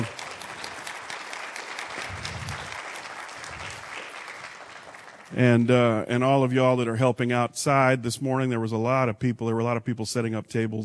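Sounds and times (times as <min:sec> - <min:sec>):
audience applause: 0:00.0 - 0:05.7
speech: 0:05.3 - 0:10.8.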